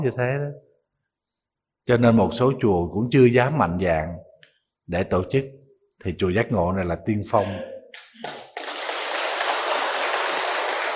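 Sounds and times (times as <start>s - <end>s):
speech: 0.0s - 0.7s, 1.9s - 4.3s, 4.9s - 8.4s
audience clapping at a gathering in Giác Ngộ Buddhist temple: 8.0s - 10.9s.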